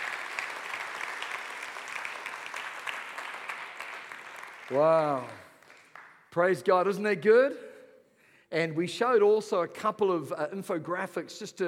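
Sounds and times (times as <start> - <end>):
audience applause: 0.0 - 6.1
speech: 4.7 - 5.4, 6.3 - 7.7, 8.5 - 11.6.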